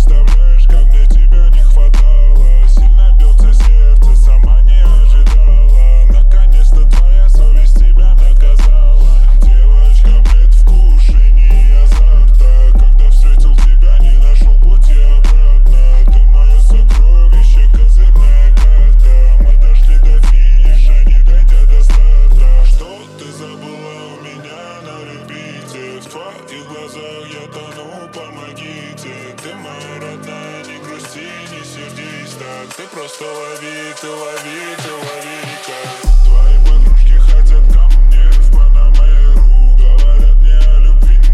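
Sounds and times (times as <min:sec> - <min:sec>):
low bass: 0:00.0 - 0:22.9, 0:36.0 - 0:41.3.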